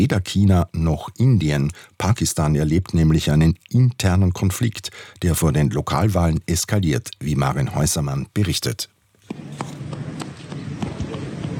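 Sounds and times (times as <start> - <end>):
speech: 0.0 - 9.7
small boy running across a square in Muzaffarabad: 9.3 - 11.5.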